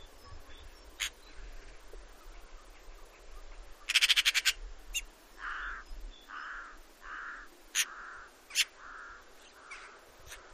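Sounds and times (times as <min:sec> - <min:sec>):
Eurasian magpie harsh calls and rattling chatter: 0:03.8 - 0:10.5.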